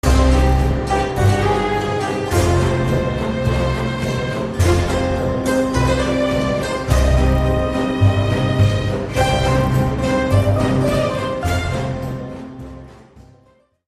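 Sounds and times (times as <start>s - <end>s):
theme melody: 0.0s - 13.6s.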